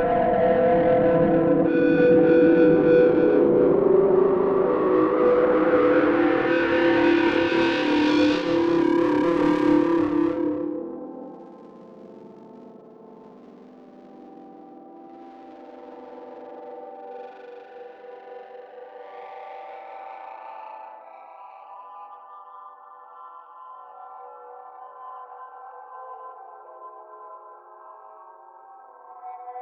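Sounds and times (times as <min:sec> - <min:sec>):
noise: 0:00.2 - 0:21.5.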